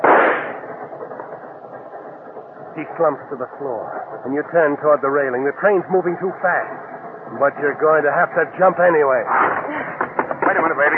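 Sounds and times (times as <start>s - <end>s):
small automatic pistol shot: 0.0s - 0.6s
speech: 2.8s - 9.5s, 10.7s - 10.9s.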